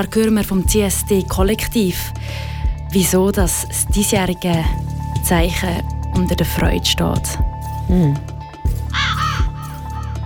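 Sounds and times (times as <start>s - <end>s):
speech: 0.0s - 8.3s
raven cawing: 8.8s - 10.2s.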